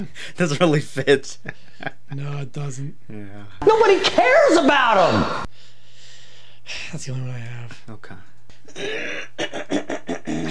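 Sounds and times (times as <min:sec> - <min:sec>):
speech: 0:00.0 - 0:05.7, 0:06.7 - 0:10.5
throat clearing: 0:08.7 - 0:10.5.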